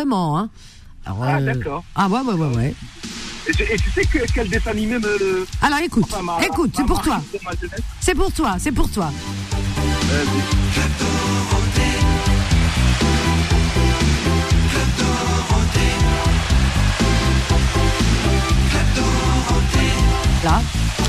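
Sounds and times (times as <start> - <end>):
speech: 0.0 - 11.8, 20.4 - 21.0
TV show theme song with full band: 9.2 - 21.0.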